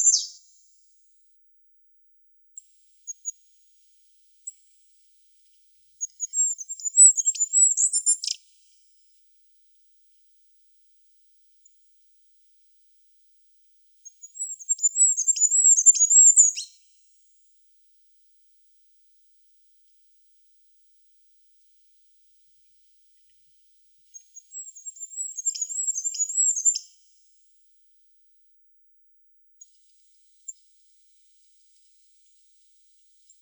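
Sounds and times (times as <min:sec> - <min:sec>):
Regulus regulus bird: 0:00.0 - 0:00.6, 0:02.6 - 0:08.6, 0:14.0 - 0:16.9, 0:24.0 - 0:27.1.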